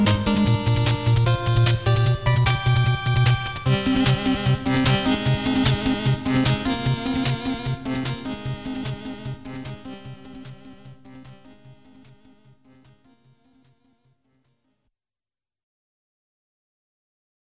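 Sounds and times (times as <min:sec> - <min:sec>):
background music: 0:00.0 - 0:14.0.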